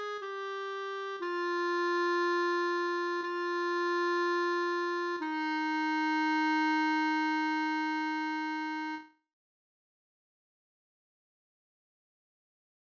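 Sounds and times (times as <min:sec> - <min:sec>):
clarinet chorale and recessional: 0:00.0 - 0:09.2.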